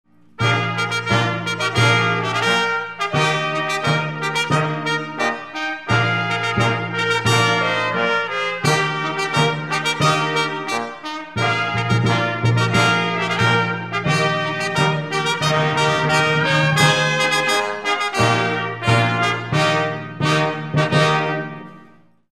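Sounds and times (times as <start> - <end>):
polka music: 0.1 - 22.3.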